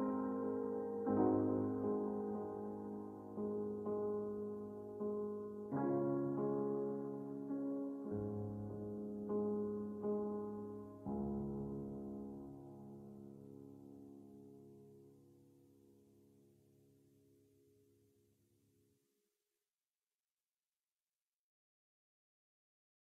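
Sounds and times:
piano piece: 0.0s - 15.3s.

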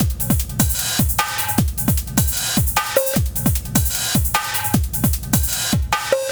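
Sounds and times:
boss fight drum music: 0.0s - 6.2s.

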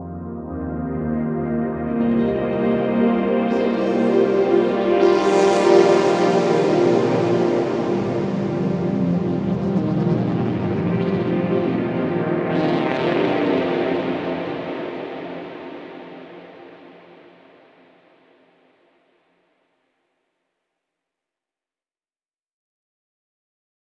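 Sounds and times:
downtown overlay drone: 0.0s - 17.8s.

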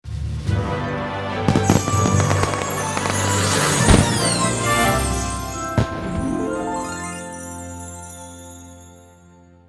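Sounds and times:
quest end music: 0.6s - 8.1s.

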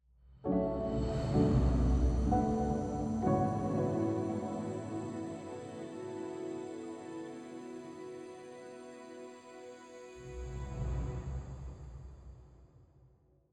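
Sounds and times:
forest-themed music stinger: 0.5s - 8.8s.

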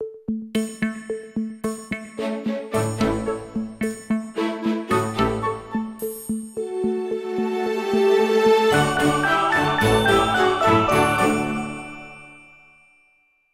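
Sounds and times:
fireworks music: 0.0s - 13.5s.

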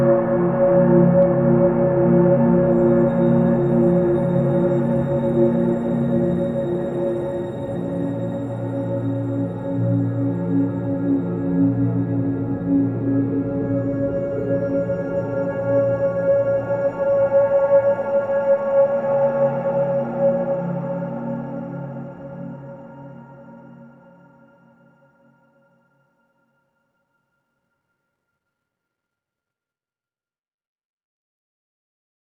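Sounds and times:
drone: 0.1s - 24.0s.

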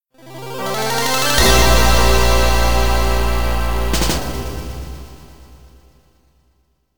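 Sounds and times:
musical stinger: 0.9s - 5.8s.

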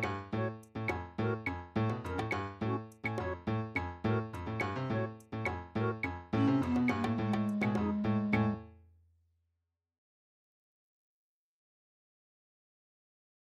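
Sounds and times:
MIDI background music: 0.0s - 8.7s.

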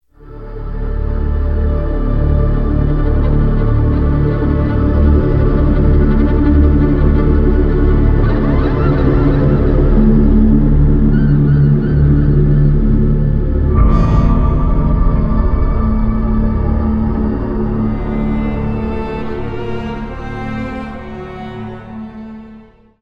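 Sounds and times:
suspense liftoff music: 0.2s - 23.0s.

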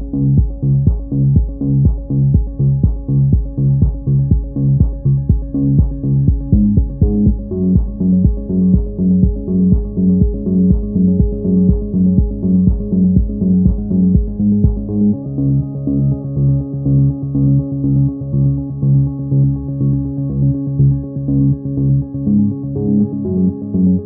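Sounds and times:
muffled Euclidean waves loop: 0.0s - 24.0s.

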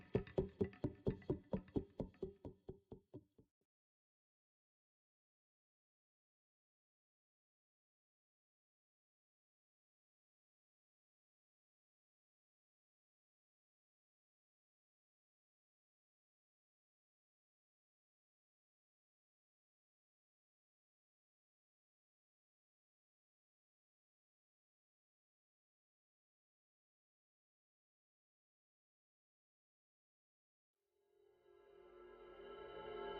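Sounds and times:
forest music percussion: 0.0s - 3.4s, 31.4s - 33.1s.

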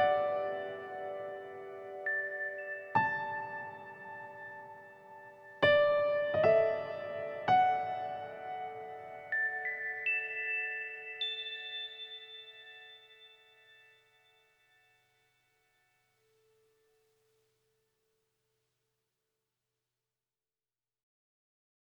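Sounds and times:
piano music: 0.0s - 14.3s.

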